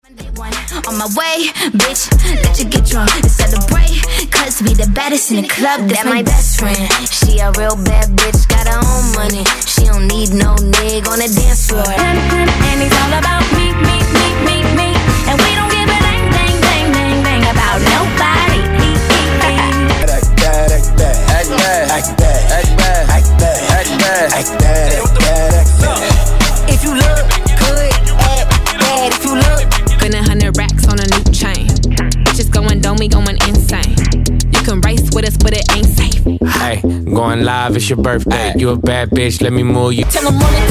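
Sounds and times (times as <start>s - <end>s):
hip hop pop megamix: 0.0s - 40.6s.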